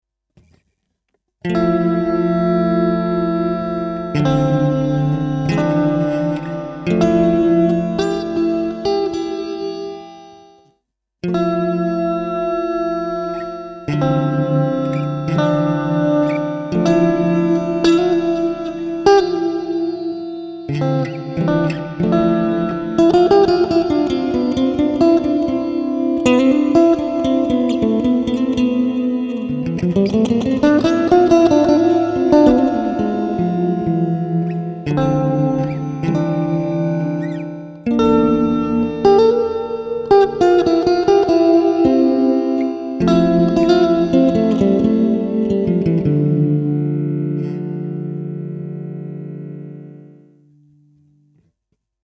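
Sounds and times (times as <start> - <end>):
guitar through Superego pedal in Sustain Mode: 1.4 - 51.5.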